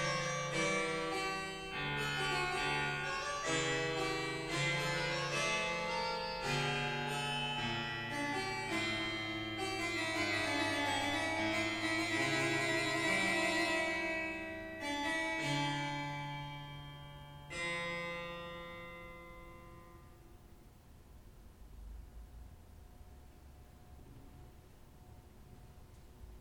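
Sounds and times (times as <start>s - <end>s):
harpsichord concerto: 0.0s - 19.9s.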